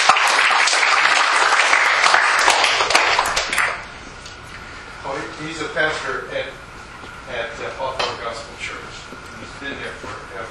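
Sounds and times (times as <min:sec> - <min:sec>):
audience applause welcoming a guest onstage: 0:00.0 - 0:03.8
speech: 0:05.4 - 0:06.6.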